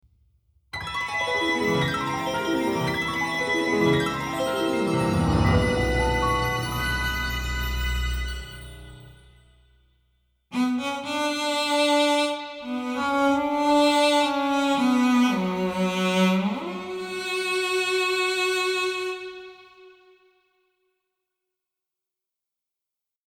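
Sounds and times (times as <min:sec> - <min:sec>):
cello: 0:01.2 - 0:09.2, 0:10.5 - 0:20.2.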